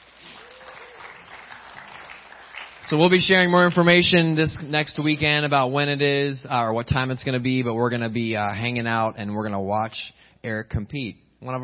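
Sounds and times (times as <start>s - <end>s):
crowd clapping: 0.0s - 5.6s
speech: 2.8s - 11.6s.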